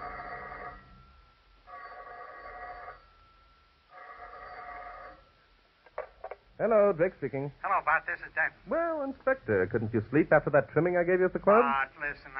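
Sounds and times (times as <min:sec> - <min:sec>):
telephone ringing: 0:00.0 - 0:05.4
speech: 0:06.6 - 0:12.3.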